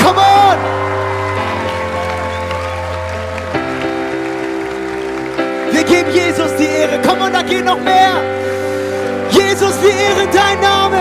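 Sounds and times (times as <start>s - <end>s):
audience applause: 0.0s - 7.5s
loud sustained keyboard chords: 0.0s - 11.0s.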